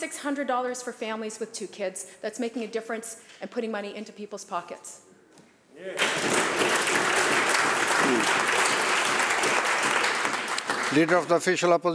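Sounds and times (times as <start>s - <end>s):
speech: 0.0s - 5.1s, 5.8s - 6.8s, 8.1s - 8.6s, 10.9s - 11.9s
legislators clapping: 5.9s - 11.6s.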